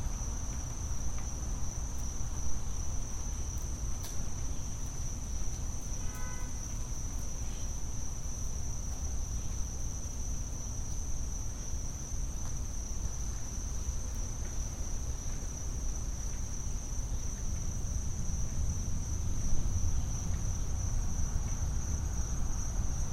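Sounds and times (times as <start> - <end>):
insect trill, most likely crickets, in a back yard: 0.2 - 23.1.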